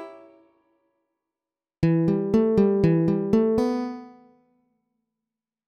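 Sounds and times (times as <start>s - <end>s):
sweep picking exercises: 1.9s - 4.2s.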